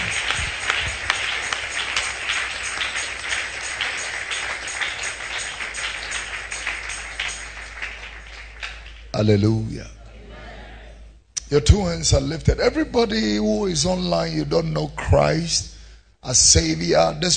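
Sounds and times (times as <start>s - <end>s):
audience clapping at a church revival service: 0.0s - 9.5s
speech: 9.2s - 10.0s, 11.5s - 17.3s.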